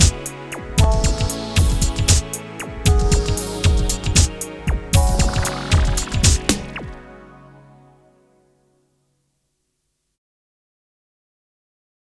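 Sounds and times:
techno music: 0:00.0 - 0:07.5.

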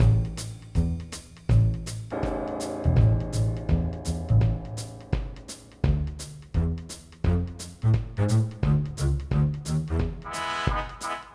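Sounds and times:
instrumental music: 0:00.0 - 0:11.3.

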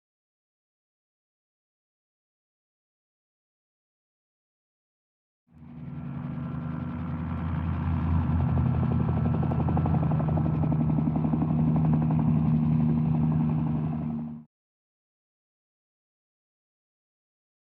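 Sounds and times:
helicopter: 0:05.5 - 0:14.5.

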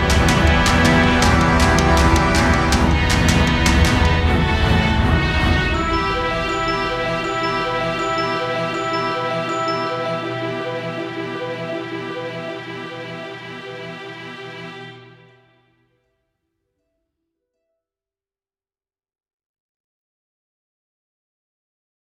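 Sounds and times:
tense story music: 0:00.0 - 0:15.6.

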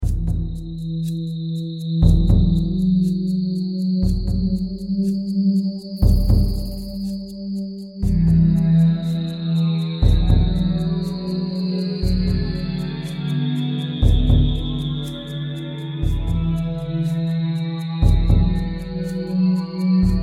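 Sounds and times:
ambient music loop: 0:00.0 - 0:20.2.

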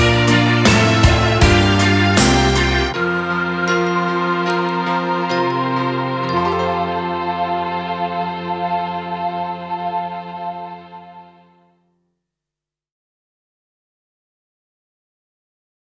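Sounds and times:
short instrumental music: 0:00.0 - 0:11.5.

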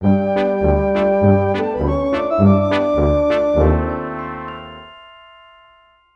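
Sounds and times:
tuba: 0:00.0 - 0:04.6.

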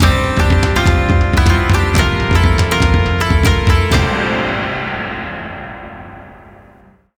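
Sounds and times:
match win jingle: 0:00.0 - 0:05.4.

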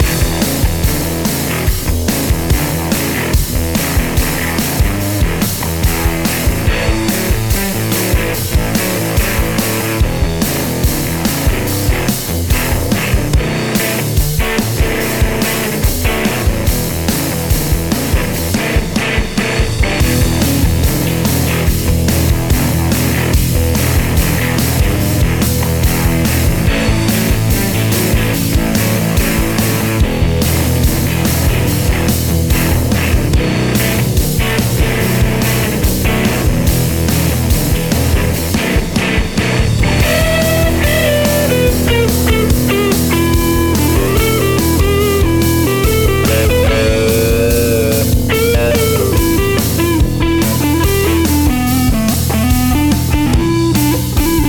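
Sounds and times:
jukebox rock music: 0:00.0 - 0:54.4.

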